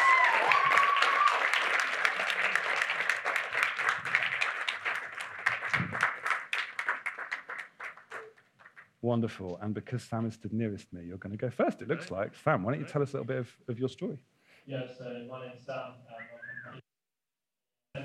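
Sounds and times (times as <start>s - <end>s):
high whoop: 0.0s - 1.6s
audience applause: 0.0s - 8.9s
speech: 9.0s - 16.1s.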